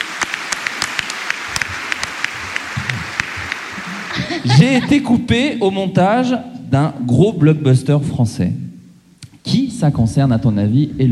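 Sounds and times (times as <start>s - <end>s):
applause: 0.0s - 4.2s
laughter: 3.8s - 5.2s
speech: 4.4s - 8.6s, 9.5s - 11.0s.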